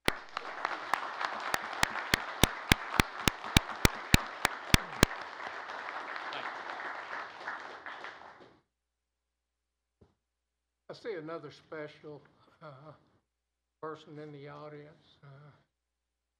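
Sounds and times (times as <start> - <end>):
sharp evenly spaced clicks: 0.0 - 0.6, 1.8 - 5.1
audience applause honouring a donor: 0.0 - 8.4
speech: 11.0 - 13.1, 13.8 - 15.7.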